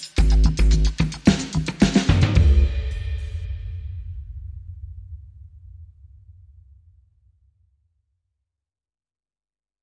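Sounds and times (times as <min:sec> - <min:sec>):
bass: 0:00.0 - 0:03.4
drums: 0:00.0 - 0:06.3.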